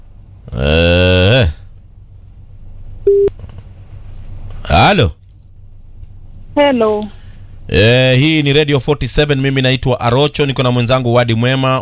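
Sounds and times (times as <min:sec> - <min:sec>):
speech: 0:00.5 - 0:01.0, 0:04.7 - 0:05.2, 0:06.6 - 0:11.8
telephone line tone on a caller's line into a radio station: 0:03.1 - 0:03.3.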